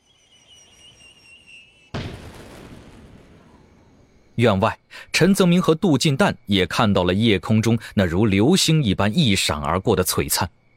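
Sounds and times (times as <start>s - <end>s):
fireworks bursting: 1.8s - 4.4s
dull explosion: 1.9s - 4.4s
speech: 4.4s - 10.6s.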